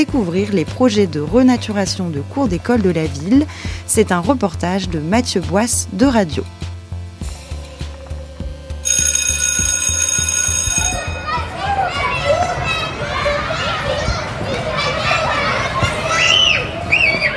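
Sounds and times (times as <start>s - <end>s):
speech: 0.0s - 6.6s
shrill electric school bell ringing: 8.8s - 11.7s
children shouting and playing in a schoolyard: 10.7s - 17.3s.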